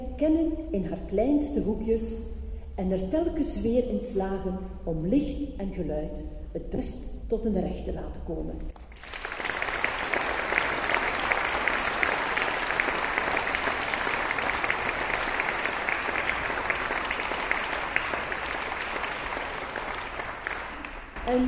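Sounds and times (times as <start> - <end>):
speech: 0.2 - 8.7
warm audience applause: 8.8 - 21.2.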